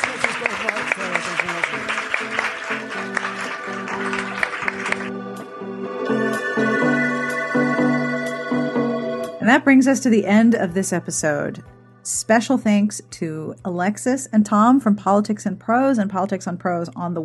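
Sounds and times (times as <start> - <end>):
audience applause: 0.0 - 5.2
bright instrumental music bed: 0.0 - 13.8
speech: 9.5 - 17.2.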